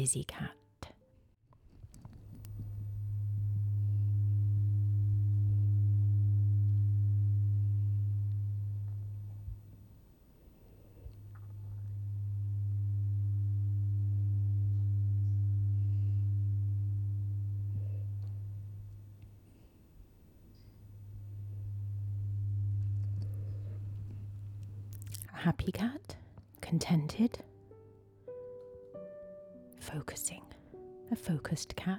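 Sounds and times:
speech: 0.0 - 0.6, 25.4 - 26.1, 26.7 - 27.5, 29.9 - 31.9
humming vibration of a wearable nerve-stimulation device: 2.1 - 25.3.

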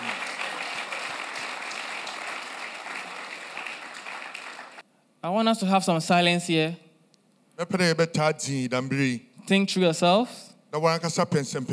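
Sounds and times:
audience clapping hands: 0.0 - 4.9
speech: 5.2 - 6.8, 7.6 - 11.7.

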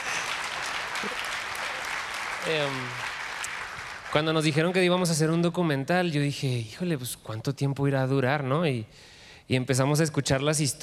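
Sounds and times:
audience applause: 0.0 - 4.9
speech: 2.4 - 3.0, 4.1 - 10.8.

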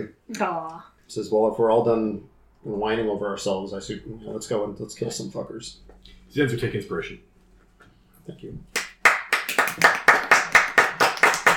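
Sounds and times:
speech: 0.0 - 7.3, 8.2 - 8.8
sharp hand claps: 8.7 - 11.5.

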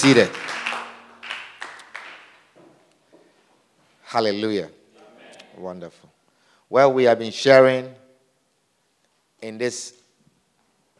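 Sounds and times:
speech: 0.0 - 0.6, 4.1 - 4.8, 5.6 - 8.0, 9.4 - 10.0
audience clapping: 0.0 - 2.6.

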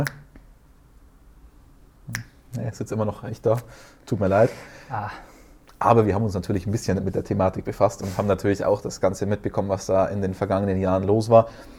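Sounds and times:
speech: 0.0 - 0.2, 2.7 - 11.7
finger snap: 0.0 - 0.5, 2.1 - 2.6
hiss: 0.0 - 11.7.

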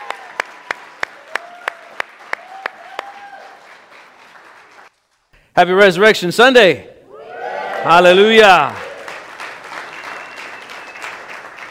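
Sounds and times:
audience applause: 0.0 - 5.1, 7.3 - 11.7
rhythmic clapping in unison: 0.0 - 5.2, 8.6 - 11.7
speech: 5.6 - 6.9, 7.8 - 8.8.

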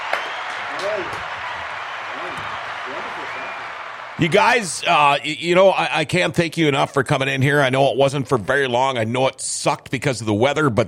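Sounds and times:
small applause: 0.0 - 5.5
speech: 0.1 - 1.4, 2.1 - 10.8.

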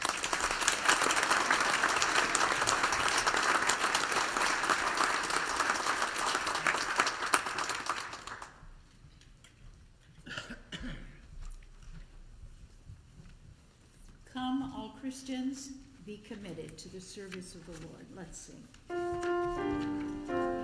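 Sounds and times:
round of applause: 0.0 - 8.8
speech: 15.6 - 20.5.

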